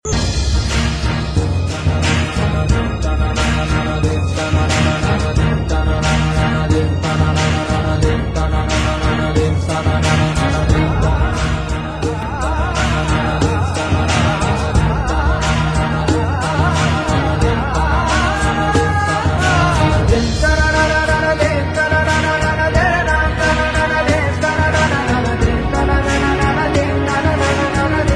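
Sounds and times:
music: 0:00.0 - 0:28.1.

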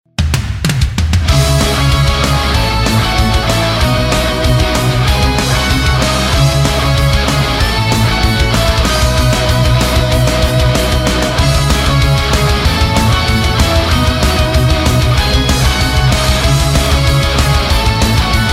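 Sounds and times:
heavy metal music: 0:00.2 - 0:18.5.

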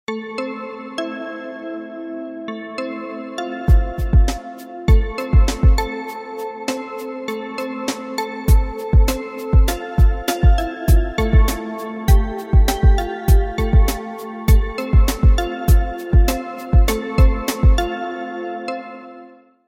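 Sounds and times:
tic tac drum: 0:03.7 - 0:05.9, 0:08.5 - 0:17.8.

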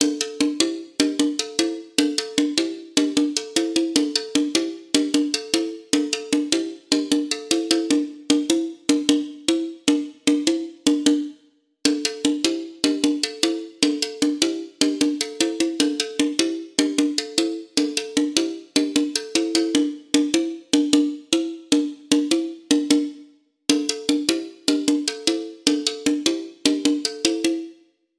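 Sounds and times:
percussion: 0:00.0 - 0:27.9.

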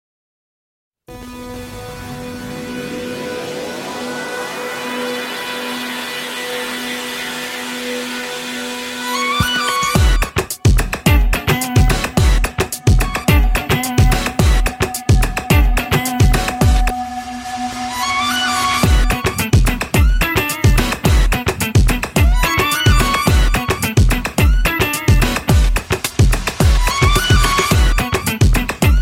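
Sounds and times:
Bollywood tune: 0:01.1 - 0:29.0.

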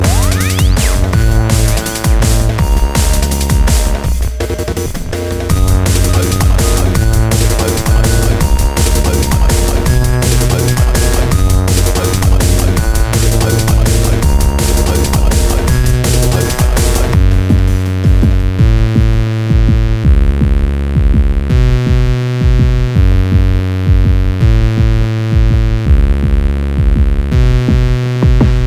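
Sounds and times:
drum and bass music: 0:00.0 - 0:28.6.

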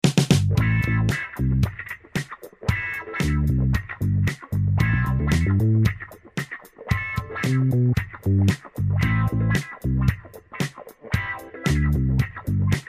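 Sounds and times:
1970s music: 0:00.0 - 0:12.8.

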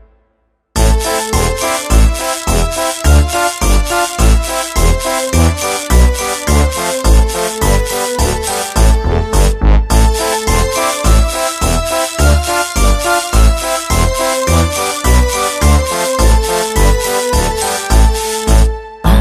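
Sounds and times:
lullaby music: 0:00.8 - 0:19.1.

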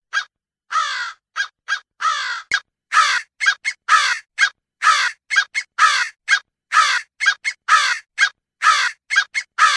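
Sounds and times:
crow cawing: 0:00.2 - 0:09.7.

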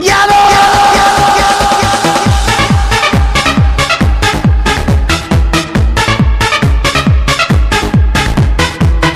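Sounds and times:
Manieczki club music tone: 0:00.6 - 0:09.1.

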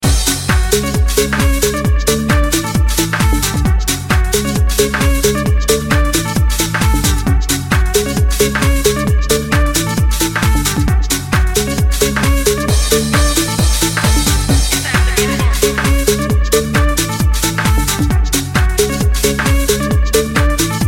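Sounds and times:
funky drop: 0:00.0 - 0:20.8.

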